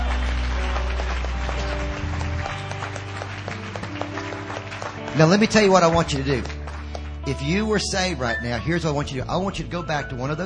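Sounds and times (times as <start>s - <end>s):
audience applause: 0.0s - 8.4s
speech: 5.2s - 6.6s, 7.2s - 10.4s.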